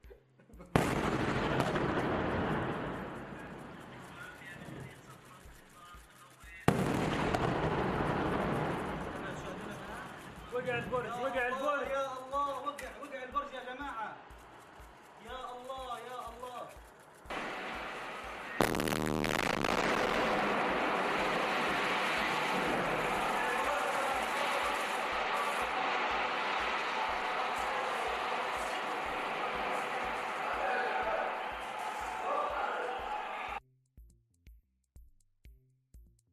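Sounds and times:
sharp cracks: 0:00.8 - 0:33.6
people talking: 0:03.2 - 0:06.7, 0:08.8 - 0:14.2, 0:15.2 - 0:16.8, 0:20.8 - 0:33.6
Gaza tower block collapsing after an Israeli strike: 0:17.3 - 0:31.5.

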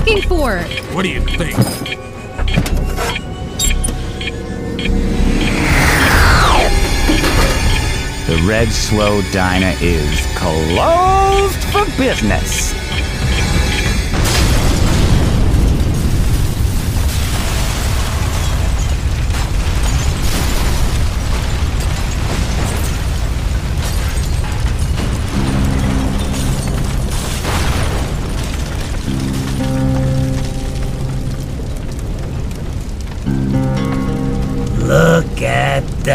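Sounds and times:
roaring crackling fire: 0:00.0 - 0:36.1
speech: 0:00.1 - 0:02.1, 0:08.3 - 0:12.8
explosion: 0:04.7 - 0:08.4, 0:14.1 - 0:33.4.

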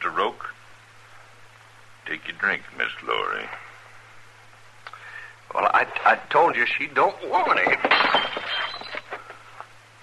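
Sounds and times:
low steady hum: 0:00.0 - 0:10.0
speech: 0:02.4 - 0:03.7, 0:05.5 - 0:08.6
clinks and knocks: 0:07.4 - 0:09.2
glass knocked out of a hand: 0:07.4 - 0:09.2.

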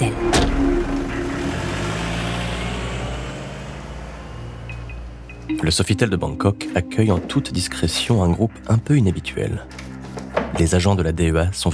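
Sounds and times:
car engine driving away: 0:00.0 - 0:05.5
speech: 0:05.6 - 0:09.8, 0:10.6 - 0:11.7.

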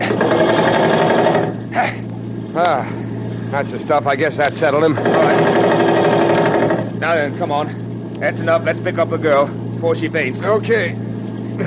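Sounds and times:
machine gun fire in a radio drama: 0:00.0 - 0:01.6, 0:05.0 - 0:06.9
speech: 0:02.6 - 0:05.8, 0:07.0 - 0:11.0.

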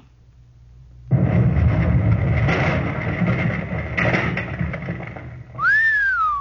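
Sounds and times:
satchel charge explosion blowing up a cottage: 0:01.1 - 0:05.6
whistle-like tone: 0:05.6 - 0:06.3.

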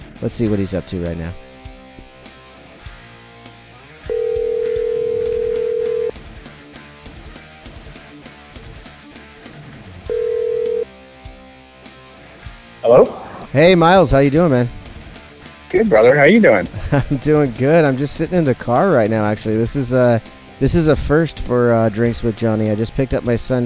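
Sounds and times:
speech: 0:00.2 - 0:01.4, 0:12.9 - 0:14.8, 0:15.7 - 0:23.6
outgoing phone call ringing: 0:04.1 - 0:06.1, 0:10.1 - 0:10.9
laughter: 0:15.8 - 0:17.6.

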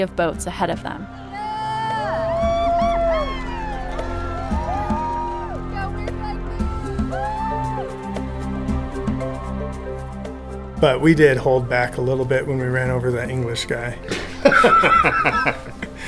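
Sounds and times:
speech: 0:00.0 - 0:01.3, 0:10.8 - 0:15.6
crowds cheering on a riverbank: 0:01.4 - 0:08.5
laughter: 0:14.1 - 0:16.0.

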